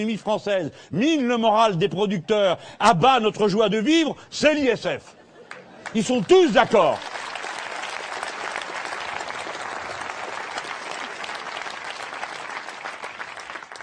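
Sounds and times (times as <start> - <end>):
speech: 0.0 - 5.2, 5.9 - 7.2
audience applause: 5.5 - 13.8.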